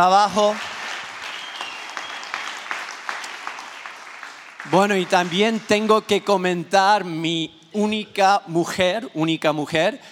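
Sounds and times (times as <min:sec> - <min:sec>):
speech: 0:00.0 - 0:00.7, 0:04.6 - 0:10.1
congregation applauding: 0:00.0 - 0:06.4.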